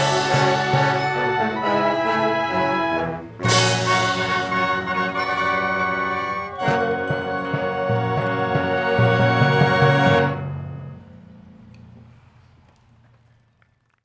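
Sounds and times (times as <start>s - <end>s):
band fanfare: 0.0s - 10.4s.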